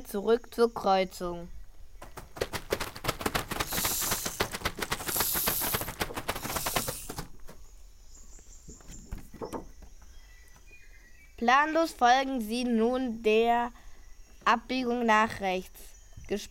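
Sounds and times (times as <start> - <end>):
speech: 0.1 - 1.6, 11.4 - 13.8, 14.4 - 16.4
fast dry rattling clatter: 2.0 - 7.5
snakes hissing: 2.2 - 7.4.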